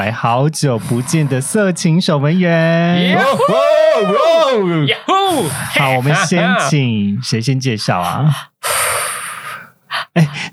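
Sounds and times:
speech: 0.0 - 8.5, 10.2 - 10.5
loud breathing into a microphone: 8.3 - 10.5.

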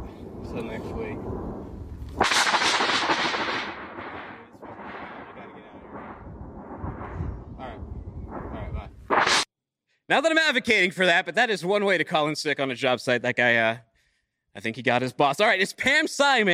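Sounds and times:
thunder and lightning strike: 0.0 - 9.4
speech: 0.5 - 2.5, 10.1 - 13.9, 14.6 - 16.5.

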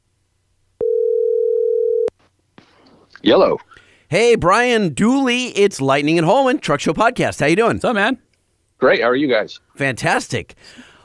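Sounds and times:
phone line ringing on outgoing call: 0.8 - 2.1
speech: 3.2 - 8.2, 8.8 - 10.9.

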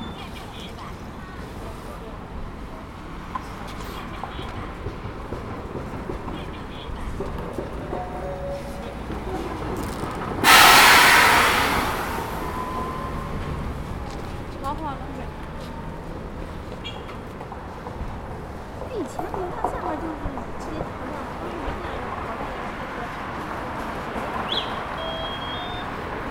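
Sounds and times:
city traffic rumble at Peking University's south gate: 0.0 - 26.3
loud hiss burst: 10.4 - 13.2.

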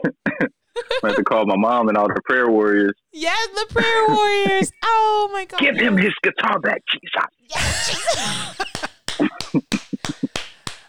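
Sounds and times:
speech: 0.0 - 8.5
laughter: 0.8 - 1.5, 3.6 - 4.8, 5.6 - 6.3, 7.5 - 10.4
clapping: 8.6 - 10.8.

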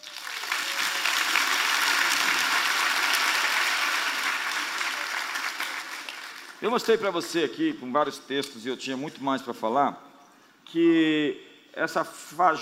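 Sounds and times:
audience applause: 0.0 - 6.6
speech: 6.6 - 10.1, 10.7 - 12.5.

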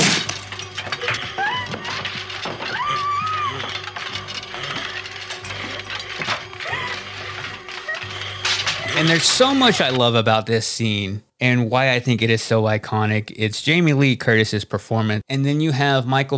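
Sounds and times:
closet door being smashed through: 0.0 - 10.1
high wavering vocal cries: 1.0 - 5.9, 6.5 - 10.0
speech: 9.0 - 16.3.

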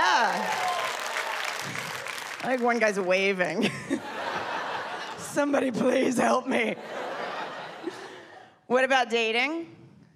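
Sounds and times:
audience applause: 0.0 - 2.8
speech: 2.4 - 4.2, 5.4 - 7.1, 8.7 - 9.8
laughter: 3.6 - 8.5.

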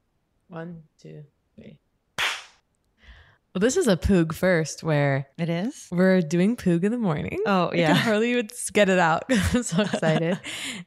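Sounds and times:
speech: 0.5 - 1.9, 3.6 - 10.8
hand clap: 2.2 - 2.6
laughter: 9.3 - 10.5.

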